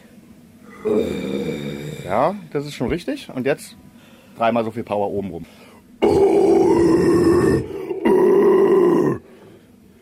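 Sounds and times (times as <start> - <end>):
raspy growled vocal bursts: 0.7 - 2.3, 6.0 - 9.3
speech: 0.8 - 3.8, 4.4 - 6.2.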